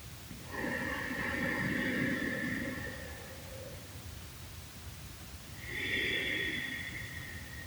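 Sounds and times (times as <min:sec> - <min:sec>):
deep belly breathing during a guided relaxation exercise: 0:00.4 - 0:03.8, 0:05.6 - 0:07.6.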